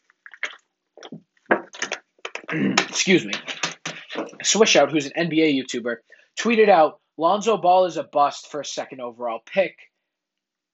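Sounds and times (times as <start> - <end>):
person drinking water: 0.0 - 3.0
speech: 2.5 - 3.6, 4.2 - 9.9.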